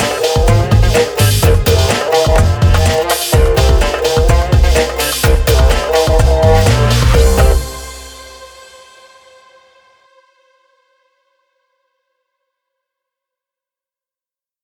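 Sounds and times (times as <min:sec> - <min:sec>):
Ramadan hip hop intro: 0:00.0 - 0:08.8.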